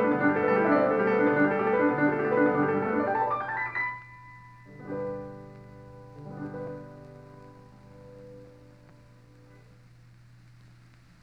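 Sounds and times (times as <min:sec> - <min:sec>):
prelude in G major: 0:00.0 - 0:08.8.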